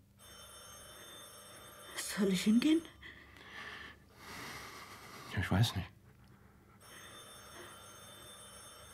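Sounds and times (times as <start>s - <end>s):
telephone bell ringing: 0.1s - 3.3s, 6.8s - 8.9s
speech: 2.2s - 3.0s, 5.4s - 6.0s.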